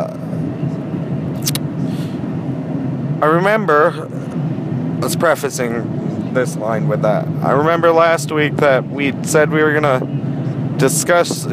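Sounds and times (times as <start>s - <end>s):
car engine and road rumble heard from inside a moving car: 0.0s - 11.5s
sharp click: 1.4s - 1.7s
speech: 3.2s - 4.3s, 5.0s - 11.5s.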